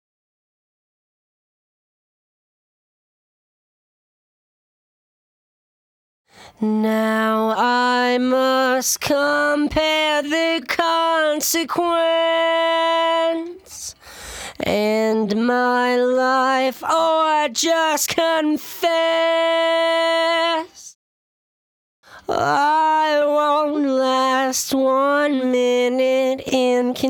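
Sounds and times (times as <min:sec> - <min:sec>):
lead vocals: 0:06.4 - 0:21.0, 0:22.1 - 0:27.0.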